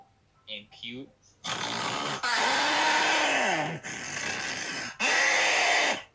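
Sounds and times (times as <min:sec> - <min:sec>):
flamingo snoring low: 0:01.4 - 0:03.2, 0:03.8 - 0:06.0.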